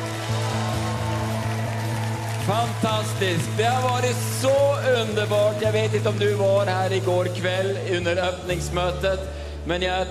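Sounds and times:
audience cheering in a hall: 0.0 - 5.8
speech: 2.5 - 10.0.

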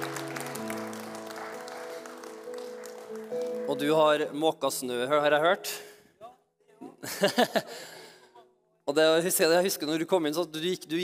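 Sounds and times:
audience applause: 0.0 - 4.0
speech: 3.7 - 5.9, 7.2 - 8.0, 8.9 - 11.0
laughter: 7.0 - 8.0.

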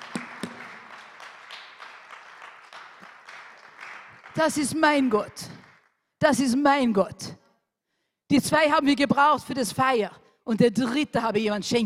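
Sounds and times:
audience clapping: 0.0 - 6.0
speech: 4.4 - 5.5, 6.2 - 7.3, 8.3 - 11.8.

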